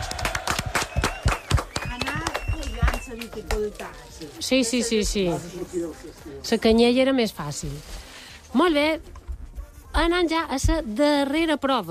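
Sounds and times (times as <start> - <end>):
crowd clapping: 0.0 - 4.0
speech: 4.4 - 9.2, 10.0 - 11.8.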